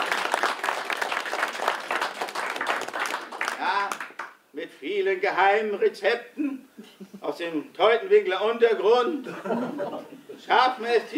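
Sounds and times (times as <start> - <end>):
audience applause: 0.0 - 4.3
speech: 4.8 - 6.6, 7.2 - 11.1
laughter: 6.7 - 7.2, 9.2 - 10.5.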